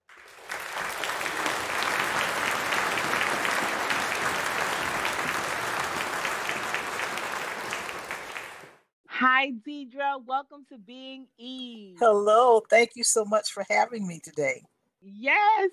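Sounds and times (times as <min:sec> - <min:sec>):
audience applause welcoming a guest onto the stage: 0:00.0 - 0:08.9
speech: 0:09.2 - 0:15.7.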